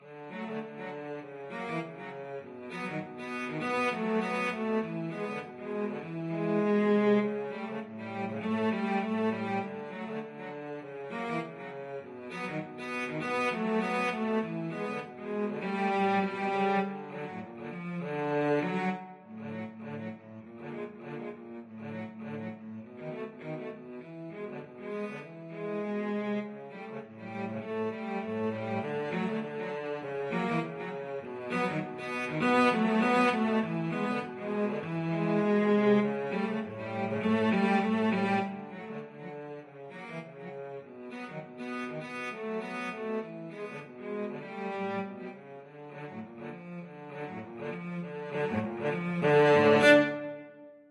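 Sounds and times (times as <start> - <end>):
cello duet playing a rag: 0.0 - 50.8.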